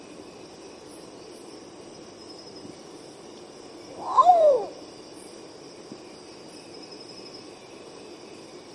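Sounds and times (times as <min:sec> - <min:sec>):
long-tailed potoo singing wailing whistles: 0:03.9 - 0:04.8.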